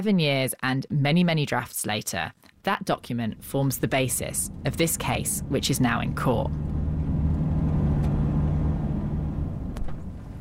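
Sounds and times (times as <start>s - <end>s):
speech: 0.0s - 6.7s
car engine and road rumble pulling over by the roadside in Kirua, Kenya: 2.9s - 10.4s.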